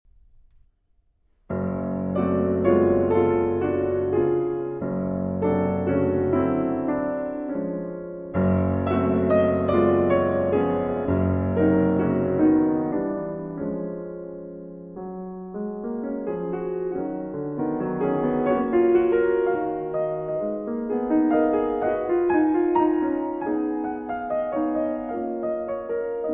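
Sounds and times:
classical prelude in F-sharp major: 1.5 - 26.3.

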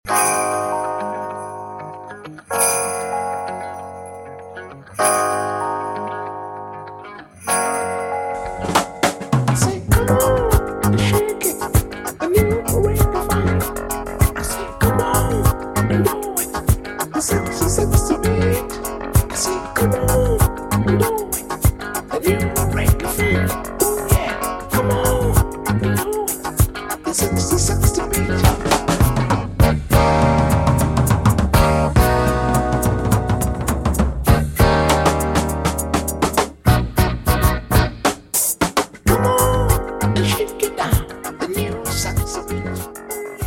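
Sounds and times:
reggae funk music: 0.1 - 43.4.

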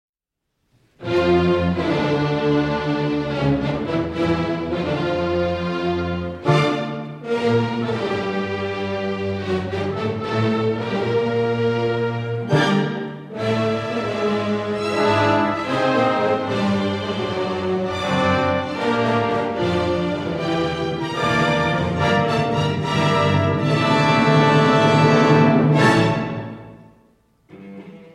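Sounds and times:
live cello concerto in D minor: 0.8 - 28.1.

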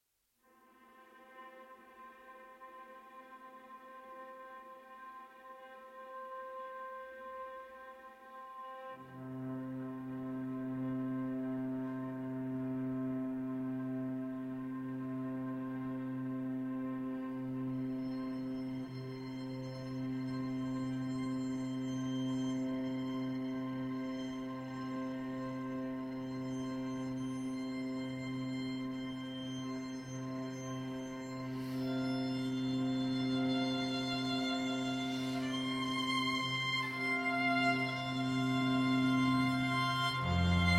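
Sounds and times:
string quartet: 1.3 - 40.7.

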